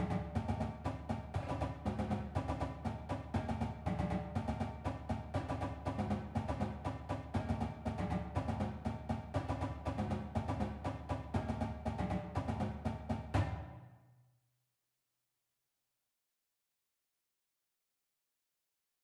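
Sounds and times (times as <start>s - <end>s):
drumline warm ups: 0.0s - 13.8s.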